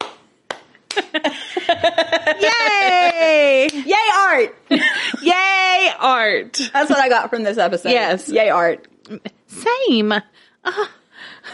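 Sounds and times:
open finger hand clapping: 0:00.0 - 0:01.1
person laughing: 0:00.9 - 0:03.2
speech: 0:03.6 - 0:11.5.

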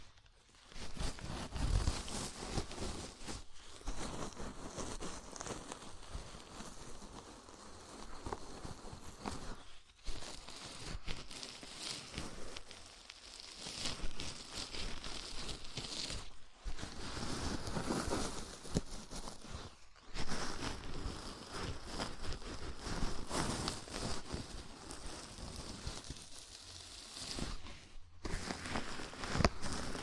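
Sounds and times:
scalp massage, fingers scratching through hair: 0:00.8 - 0:30.0.

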